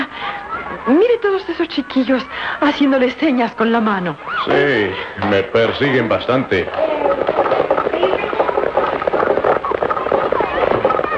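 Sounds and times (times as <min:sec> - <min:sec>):
murmuring voices and street bustle: 0:00.0 - 0:02.9, 0:04.2 - 0:11.1
speech: 0:00.8 - 0:07.3
cart clattering behind a horse: 0:04.3 - 0:11.1
single horse pulling a cart clip-clopping: 0:04.3 - 0:11.1.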